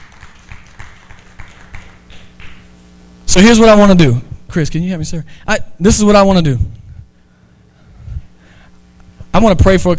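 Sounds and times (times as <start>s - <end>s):
audience clapping: 0.0s - 2.6s
speech: 3.4s - 6.8s, 9.4s - 9.9s.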